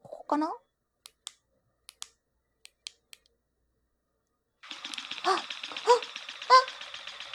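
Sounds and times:
piston vibrator running: 4.6 - 7.3.

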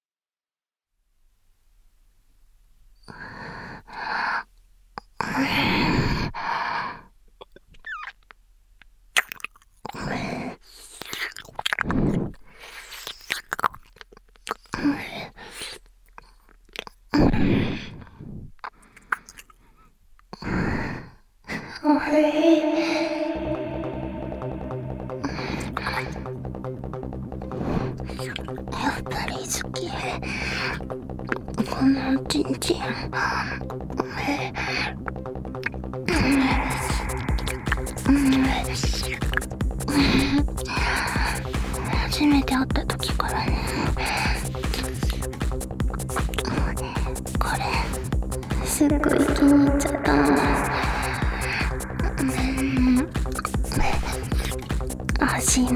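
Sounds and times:
fellatio sucking sounds: 5.2 - 8.2, 9.2 - 13.9, 16.8 - 19.8, 20.4 - 55.7
ear licking sounds: 9.2 - 17.4, 18.6 - 20.4, 35.1 - 55.7.

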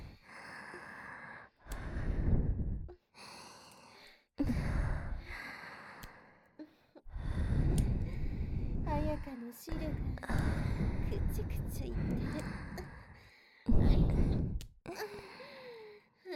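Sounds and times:
heavy breathing close to the ear: 0.0 - 16.3
speech: 9.3 - 12.6.

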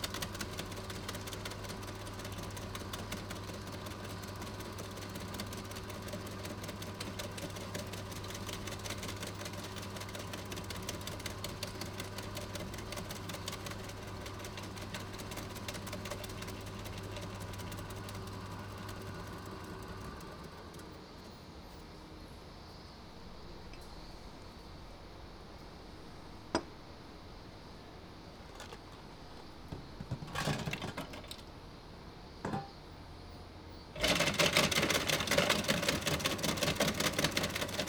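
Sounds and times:
shaved ice machine: 0.0 - 21.4, 28.4 - 31.5, 34.0 - 37.8
distant cicadas: 20.4 - 34.0.

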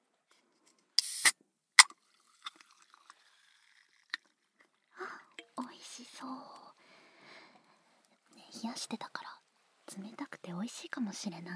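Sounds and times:
soda bottle cap twisting open: 1.0 - 1.3
speech: 6.2 - 6.6, 8.6 - 11.5.

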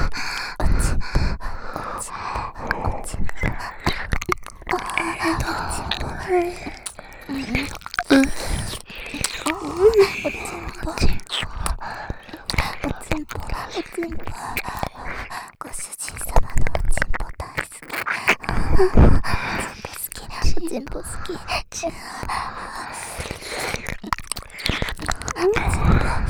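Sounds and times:
ear licking: 0.0 - 26.2
person moaning: 4.7 - 11.2.

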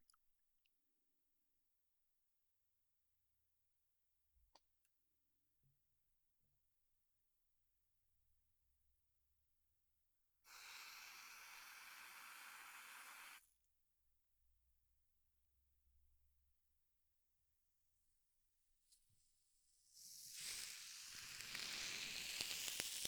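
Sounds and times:
carbonated fizzing ear massage: 10.5 - 13.4, 19.9 - 23.0.

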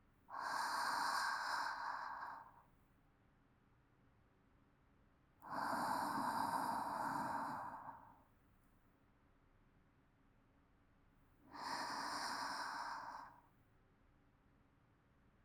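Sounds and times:
calm sleep breathing: 0.3 - 2.6, 5.4 - 8.2, 11.5 - 13.5.

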